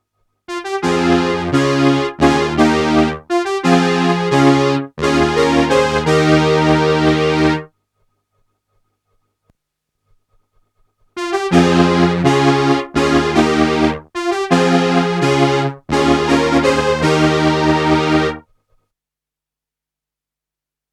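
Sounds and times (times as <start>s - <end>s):
Roland Juno-60 mono brass synthesizer: 0.5s - 7.7s, 11.2s - 18.4s.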